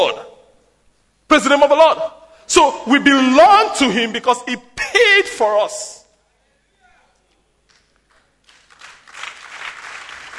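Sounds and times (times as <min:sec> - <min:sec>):
speech: 0:01.3 - 0:06.0
audience clapping: 0:07.6 - 0:10.3.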